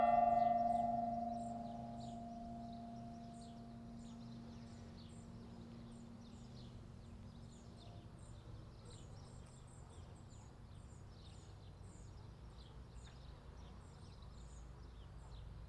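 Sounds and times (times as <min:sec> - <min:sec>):
bells ringing at LaCorrada: 0:00.0 - 0:04.2.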